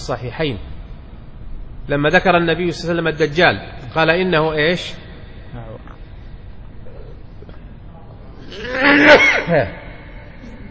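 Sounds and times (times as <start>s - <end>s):
speech: 0.0s - 0.7s, 1.9s - 5.7s, 8.8s - 9.8s
person sneezing: 8.5s - 9.7s.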